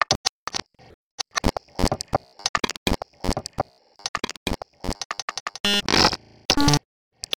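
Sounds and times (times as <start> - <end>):
clicks and pops: 1.2 - 6.6.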